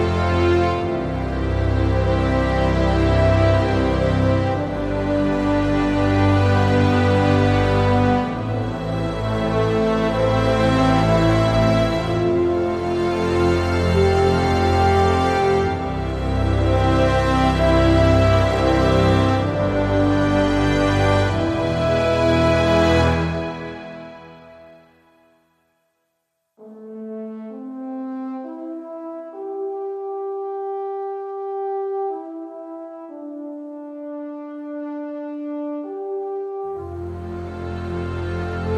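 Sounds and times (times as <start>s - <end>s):
bass: 0.0s - 24.5s, 36.8s - 38.7s
strings: 0.0s - 25.5s, 28.1s - 38.7s.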